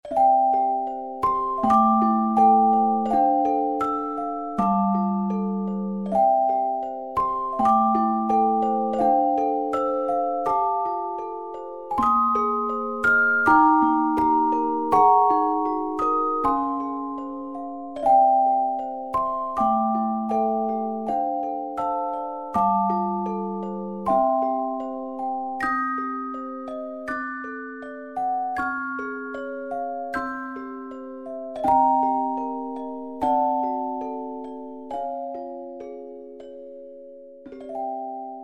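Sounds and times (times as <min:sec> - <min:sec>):
Christmas tune: 0:00.0 - 0:38.4.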